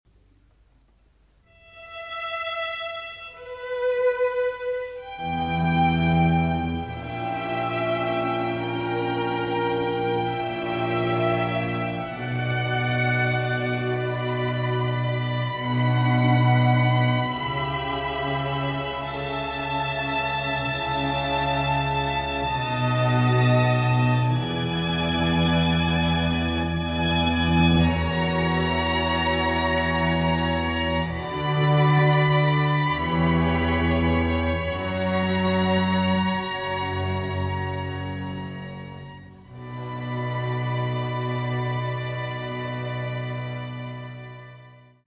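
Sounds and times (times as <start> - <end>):
concerto for violins: 1.5 - 45.0.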